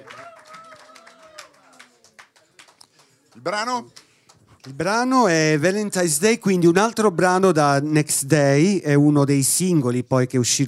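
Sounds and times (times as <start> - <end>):
audience applause: 0.0 - 4.9
speech: 3.4 - 4.0, 4.6 - 10.6.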